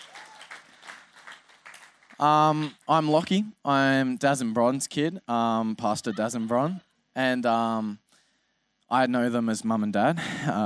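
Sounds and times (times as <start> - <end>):
crowd applauding: 0.0 - 2.5
speech: 2.2 - 8.0, 8.9 - 10.6.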